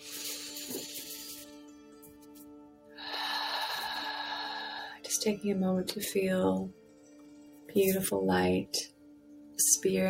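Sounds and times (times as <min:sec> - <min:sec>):
slow deep breathing during a meditative mantra session: 0:02.9 - 0:05.0
speech: 0:05.2 - 0:06.8, 0:07.7 - 0:08.9, 0:09.8 - 0:10.0.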